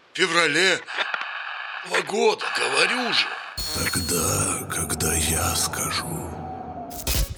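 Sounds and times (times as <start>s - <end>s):
speech: 0.2s - 1.0s, 1.8s - 6.4s
radio interference on the line: 3.6s - 4.8s, 6.9s - 7.3s.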